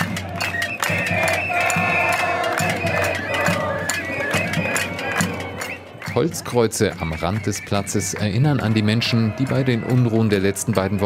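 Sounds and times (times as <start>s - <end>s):
protest crowd chanting: 0.0s - 6.1s, 8.5s - 11.0s
speech: 6.2s - 11.0s.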